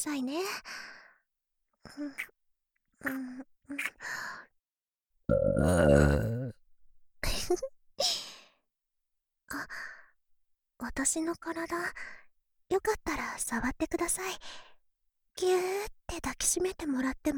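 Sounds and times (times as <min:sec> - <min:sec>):
speech: 0:00.0 - 0:01.0, 0:01.8 - 0:02.4, 0:03.0 - 0:04.5, 0:05.3 - 0:06.6, 0:07.5 - 0:08.2, 0:10.8 - 0:14.7, 0:15.4 - 0:17.3
burping: 0:05.3 - 0:06.6.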